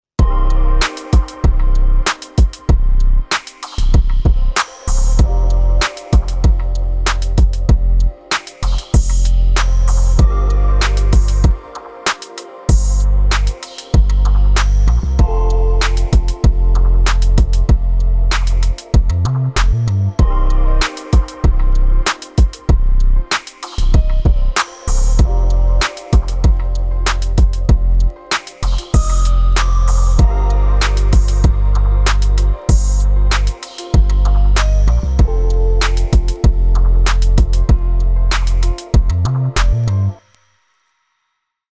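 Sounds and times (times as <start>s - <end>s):
lo-fi music: 0.2s - 40.4s.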